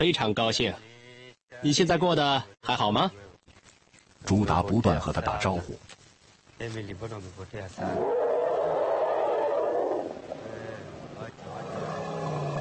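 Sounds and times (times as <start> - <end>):
speech: 0.0 - 0.9, 1.5 - 3.2, 4.2 - 6.0, 6.6 - 8.2
young elephant roaring: 7.8 - 12.6.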